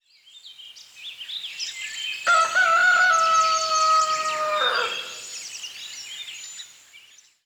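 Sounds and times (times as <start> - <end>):
morning ambience: 2.3 - 5.5.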